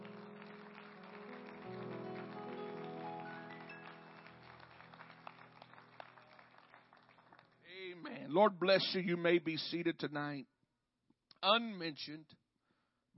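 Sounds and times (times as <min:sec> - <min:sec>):
audience clapping hands: 0:00.0 - 0:08.8
speech: 0:08.3 - 0:10.5, 0:11.4 - 0:12.4.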